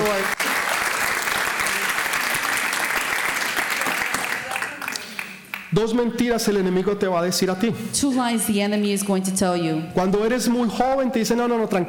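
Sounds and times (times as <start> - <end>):
audience applause: 0.0 - 5.7
speech: 5.7 - 11.8.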